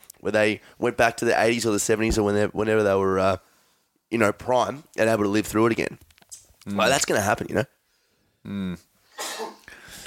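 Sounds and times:
speech: 0:00.2 - 0:03.5, 0:04.1 - 0:07.8, 0:08.4 - 0:08.9
person sneezing: 0:09.1 - 0:10.0.

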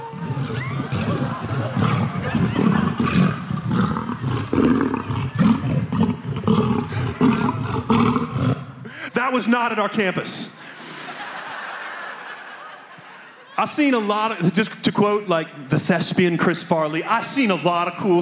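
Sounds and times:
laughter: 0:00.0 - 0:08.4, 0:10.7 - 0:15.2
lions roaring: 0:00.1 - 0:08.8
speech: 0:09.3 - 0:10.6, 0:13.6 - 0:18.2.

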